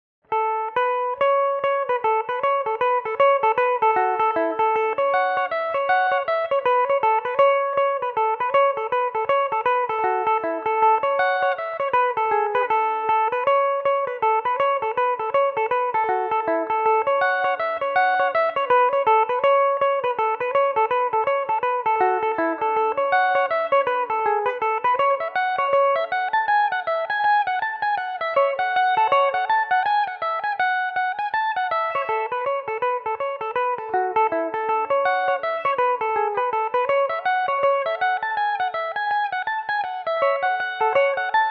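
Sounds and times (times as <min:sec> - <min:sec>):
Irish mandolin playing a reel in A major: 0:00.4 - 0:41.5.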